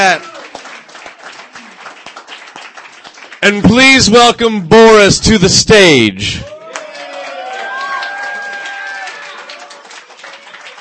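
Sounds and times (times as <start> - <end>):
speech: 0.0 - 0.3, 3.4 - 6.5
small crowd applauding at a reading: 0.0 - 3.7, 6.4 - 10.7.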